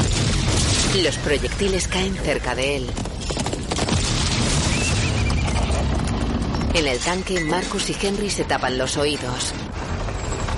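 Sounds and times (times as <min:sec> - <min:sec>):
speech: 0:00.9 - 0:03.1, 0:06.8 - 0:09.7
hooves galloping: 0:01.0 - 0:08.2, 0:09.3 - 0:10.5
horse whinnying: 0:04.7 - 0:06.0.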